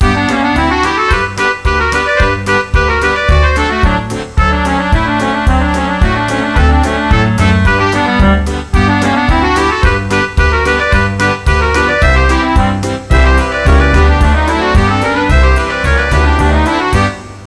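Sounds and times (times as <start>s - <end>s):
polka music: 0.0s - 17.4s.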